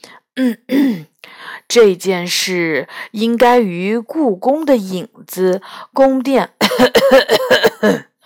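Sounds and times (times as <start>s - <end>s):
speech: 0.4s - 1.1s, 1.7s - 8.1s
person coughing, throat clearing: 0.4s - 1.2s, 6.6s - 8.2s.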